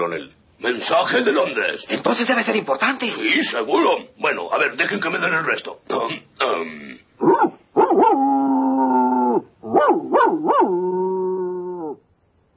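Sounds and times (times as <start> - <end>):
speech: 0.0 - 7.5
dog howling, whining and barking: 7.2 - 12.1.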